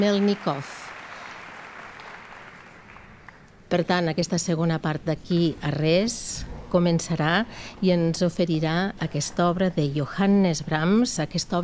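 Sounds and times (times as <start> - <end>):
speech: 0.0 - 0.8, 3.7 - 11.6
concert audience applauding as performers walk onto the stage: 0.0 - 3.4.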